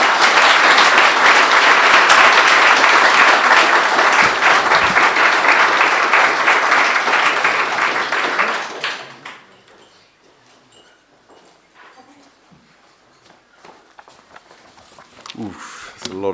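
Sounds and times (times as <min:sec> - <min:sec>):
crowd applauding: 0:00.0 - 0:09.9.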